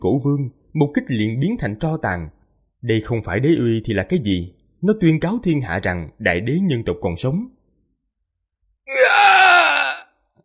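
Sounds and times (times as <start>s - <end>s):
speech: 0.0s - 7.6s
final agonized scream: 8.9s - 10.1s.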